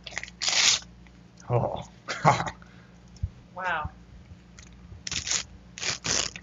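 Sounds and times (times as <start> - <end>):
paper birth certificate being ripped up: 0.1 - 0.8, 5.1 - 6.4
speech: 1.5 - 2.6.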